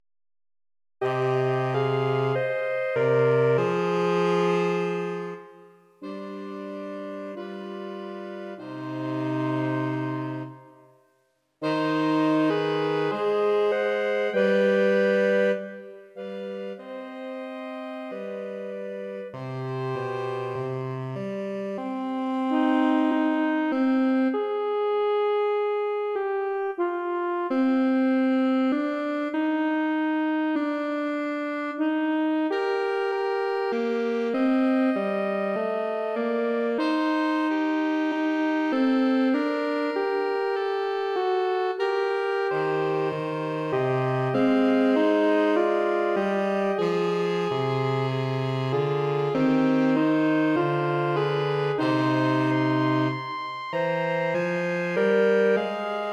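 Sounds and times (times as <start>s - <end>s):
saxophone trio: 1.0s - 11.0s, 11.6s - 56.1s.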